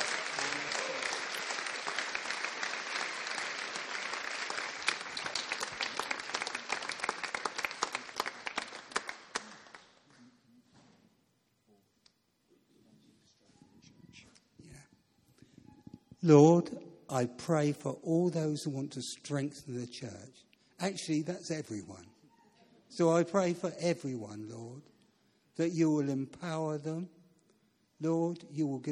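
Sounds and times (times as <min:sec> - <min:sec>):
round of applause: 0:00.0 - 0:10.3
speech: 0:16.3 - 0:22.1, 0:23.0 - 0:24.9, 0:25.6 - 0:27.2, 0:28.0 - 0:28.9.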